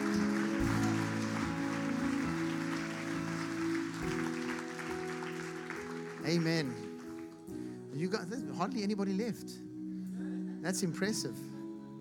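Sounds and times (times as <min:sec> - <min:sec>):
audience clapping: 0:00.0 - 0:07.7
speech: 0:06.3 - 0:06.8, 0:08.0 - 0:09.7, 0:10.6 - 0:11.6.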